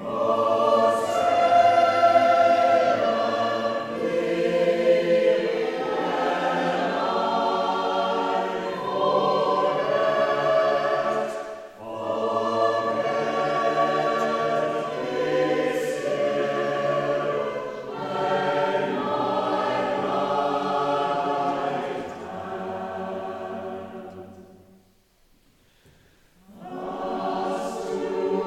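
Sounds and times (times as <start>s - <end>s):
chapel choir singing: 0.0s - 24.8s, 26.4s - 28.4s.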